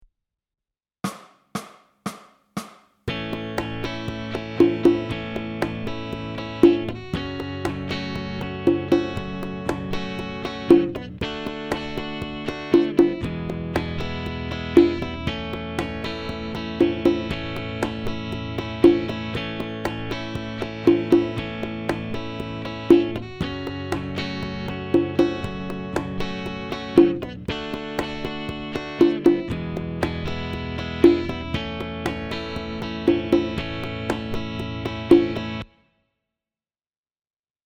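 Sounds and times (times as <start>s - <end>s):
backing track: 3.1s - 35.6s.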